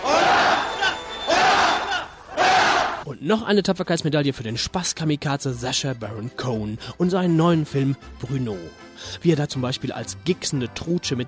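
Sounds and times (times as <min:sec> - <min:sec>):
large crowd shouting a thunderous hurrah: 0:00.0 - 0:03.0
speech: 0:03.1 - 0:11.2.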